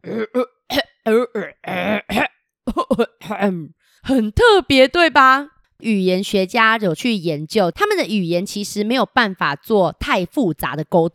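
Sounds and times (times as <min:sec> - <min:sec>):
voice imitating cough-like tribal language: 0:00.0 - 0:03.8
speech: 0:00.1 - 0:00.5, 0:03.4 - 0:11.1.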